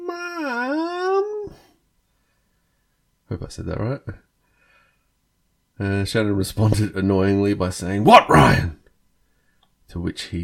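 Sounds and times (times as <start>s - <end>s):
voice imitating a long squeaky whine: 0.0s - 1.6s
speech: 3.3s - 4.3s, 5.8s - 8.8s, 9.9s - 10.4s.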